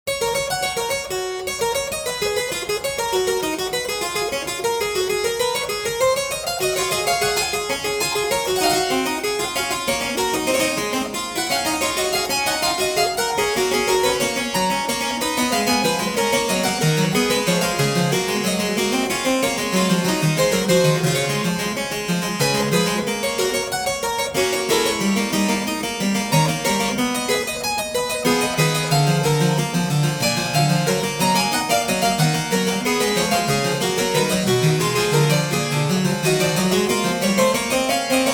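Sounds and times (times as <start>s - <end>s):
prelude and fugue in G major: 0.0s - 38.3s.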